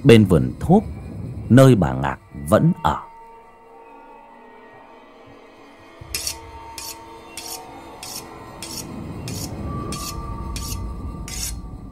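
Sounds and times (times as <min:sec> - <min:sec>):
speech: 0:00.0 - 0:03.1
low rumbling drone: 0:00.0 - 0:04.1, 0:04.7 - 0:11.9
knife being sharpened on a whetstone: 0:06.0 - 0:11.6.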